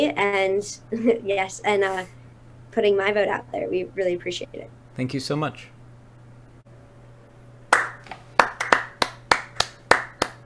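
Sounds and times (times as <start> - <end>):
speech: 0.0 - 5.7
audience round of applause: 7.7 - 10.4.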